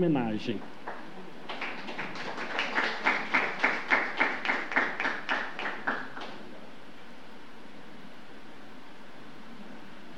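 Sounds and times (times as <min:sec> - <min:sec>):
rhythmic crowd applause: 0:00.8 - 0:06.4.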